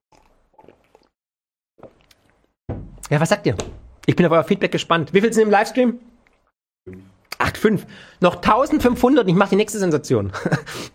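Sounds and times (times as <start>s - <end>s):
person taking a drink, sipping and swallowing: 0.1s - 1.2s, 1.8s - 2.6s
speech: 3.1s - 6.1s, 7.5s - 10.9s.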